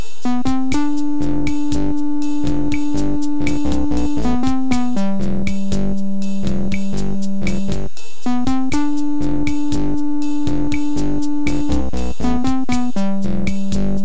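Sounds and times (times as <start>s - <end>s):
bossa nova music: 0.3s - 14.0s.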